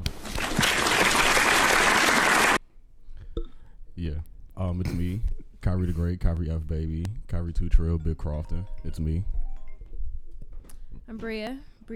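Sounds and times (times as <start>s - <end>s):
applause sound effect: 0.2s - 2.6s
speech: 4.7s - 9.4s, 11.1s - 11.9s.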